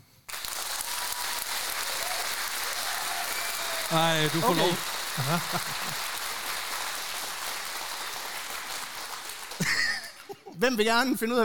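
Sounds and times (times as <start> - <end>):
applause: 0.2 - 10.4
speech: 3.9 - 6.1, 10.6 - 11.4
laughter: 3.9 - 6.2, 9.5 - 10.6.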